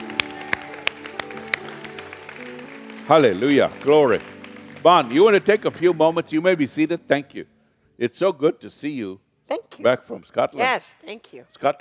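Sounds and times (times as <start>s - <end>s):
church congregation hand claps giving praise: 0.0s - 7.1s
speech: 3.1s - 11.7s.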